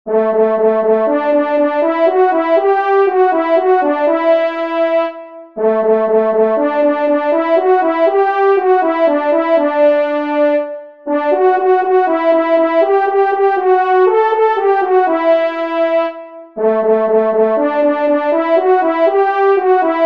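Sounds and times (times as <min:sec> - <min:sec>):
hunting horns playing a solo call: 0:00.1 - 0:20.0.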